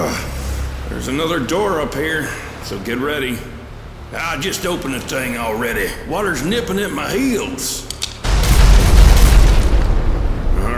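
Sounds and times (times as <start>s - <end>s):
speech: 0.9s - 7.9s
loud unsuppressed gunshot: 8.3s - 10.7s.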